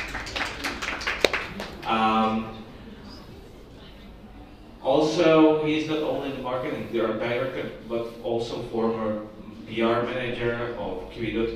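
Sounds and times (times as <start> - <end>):
scattered audience applause: 0.0 - 2.8
speech: 1.9 - 2.6, 5.0 - 11.5.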